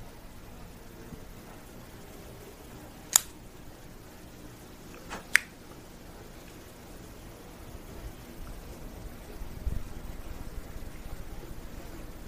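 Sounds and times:
hiss: 0.0s - 12.2s
cutting a Joya de Nicaragua Antaño 1970 cigar: 3.1s - 3.4s.

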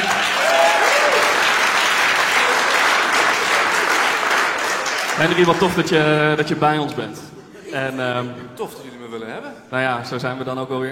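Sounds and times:
audience applause: 0.0s - 6.0s
speech: 5.2s - 10.8s.

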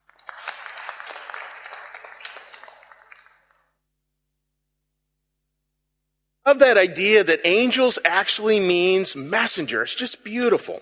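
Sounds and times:
audience round of applause: 0.0s - 3.6s
speech: 6.5s - 10.8s.

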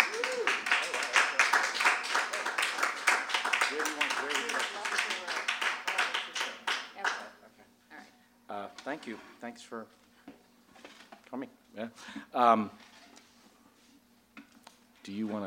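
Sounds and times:
crowd applauding: 0.0s - 7.4s
speech: 8.9s - 10.0s, 11.3s - 12.9s, 15.1s - 15.4s.

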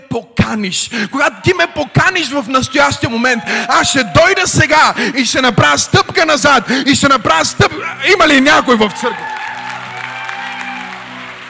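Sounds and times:
speech: 0.2s - 9.4s
audience clapping in church: 8.1s - 11.4s.

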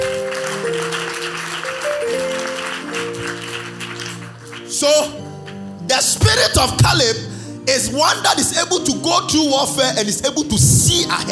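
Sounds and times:
audience clapping hands: 0.0s - 6.4s
speech: 4.8s - 5.2s, 6.1s - 11.3s.

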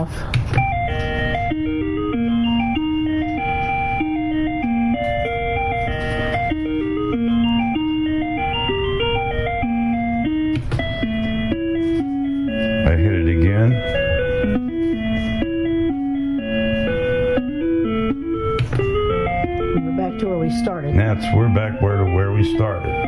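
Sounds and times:
speech: 0.0s - 0.4s
electronic bell tones playing a melody: 0.0s - 23.0s.

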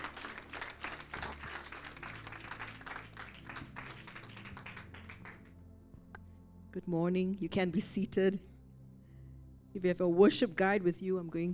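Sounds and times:
audience hand clapping: 0.0s - 5.5s
speech: 6.8s - 8.5s, 9.8s - 11.5s.

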